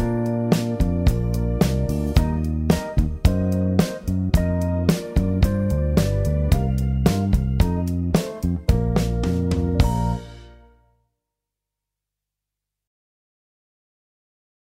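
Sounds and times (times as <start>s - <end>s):
Christmas song: 0.0s - 10.9s.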